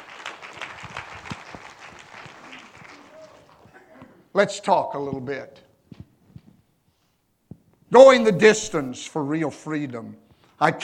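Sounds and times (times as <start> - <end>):
hand clapping: 0.0 - 3.8
speech: 4.4 - 5.6, 7.9 - 10.8.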